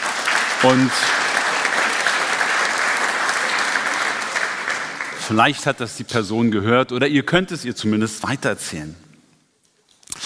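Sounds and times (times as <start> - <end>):
audience applause: 0.0 - 5.6
speech: 0.6 - 1.3, 5.3 - 9.0.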